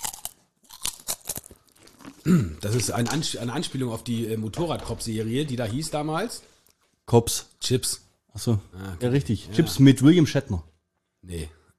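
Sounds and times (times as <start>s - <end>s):
person chewing crunchy food: 0.0s - 3.3s
speech: 2.2s - 6.5s, 7.1s - 11.7s.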